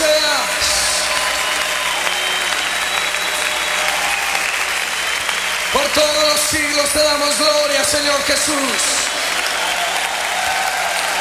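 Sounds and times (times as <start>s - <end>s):
audience applauding: 0.0s - 11.2s
speech: 6.0s - 9.0s.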